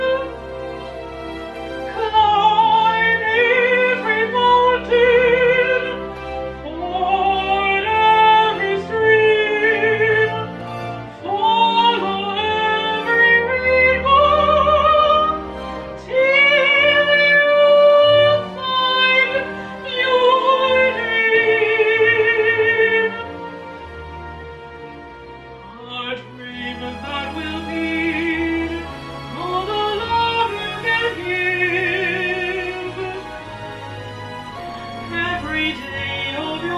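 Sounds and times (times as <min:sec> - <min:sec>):
Broadway musical theatre singing: 0:00.0 - 0:36.7.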